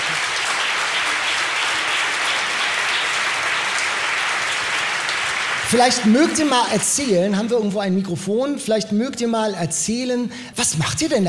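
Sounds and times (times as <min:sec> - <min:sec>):
audience applause: 0:00.0 - 0:07.4
speech: 0:05.7 - 0:11.2.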